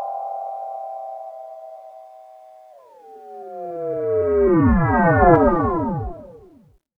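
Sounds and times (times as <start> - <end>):
laser sound effect: 3.1 - 6.7.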